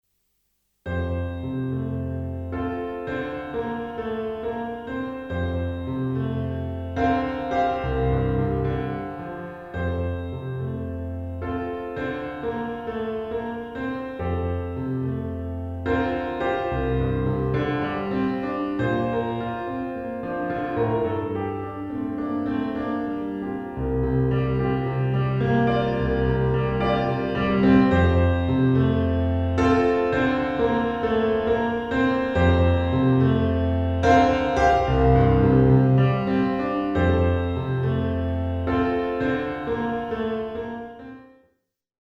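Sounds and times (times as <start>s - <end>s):
pop piano: 0.9s - 41.3s.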